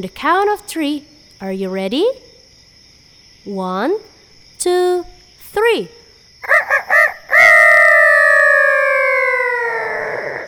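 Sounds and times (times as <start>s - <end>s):
speech: 0.0s - 2.3s, 3.4s - 6.0s
children loudly imitating a chicken: 6.4s - 10.4s.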